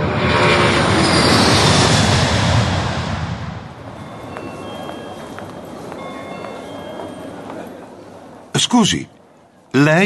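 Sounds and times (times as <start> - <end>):
engine roar at Florence airport: 0.0 - 4.0
speech: 8.6 - 9.2, 9.8 - 10.0.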